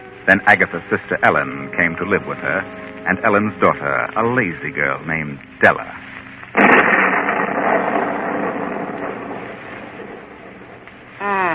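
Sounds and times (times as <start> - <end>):
speech: 0.2 - 6.6
thunder of an approaching storm: 6.6 - 11.1.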